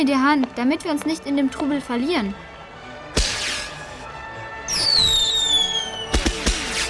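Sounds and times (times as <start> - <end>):
speech: 0.0 - 2.5
fireworks exploding: 3.2 - 3.9, 4.7 - 6.8.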